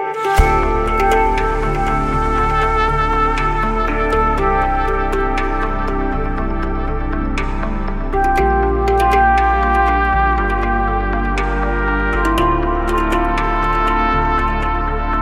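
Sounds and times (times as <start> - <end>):
flute ringtone: 0.2 - 15.1.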